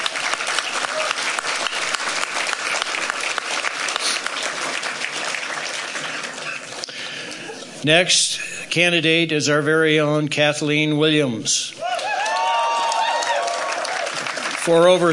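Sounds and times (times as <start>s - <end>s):
audience applause: 0.0s - 7.8s, 11.8s - 15.1s
speech: 7.8s - 11.8s, 14.6s - 15.1s.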